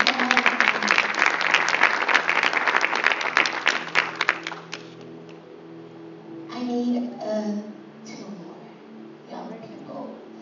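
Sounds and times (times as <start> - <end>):
audience clapping: 0.0 - 5.4.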